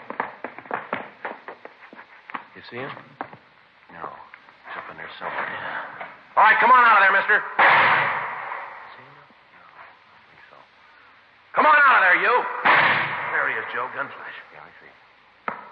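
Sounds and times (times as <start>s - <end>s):
speech: 2.6s - 3.2s, 4.9s - 8.2s, 13.7s - 15.1s
gunshots in an old radio crime drama: 7.4s - 9.1s, 12.4s - 14.4s.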